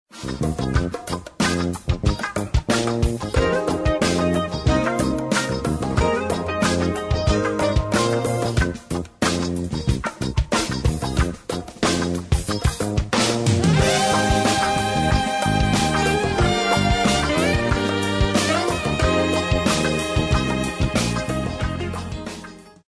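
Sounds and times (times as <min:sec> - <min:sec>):
jazz pop music: 0:00.1 - 0:22.8.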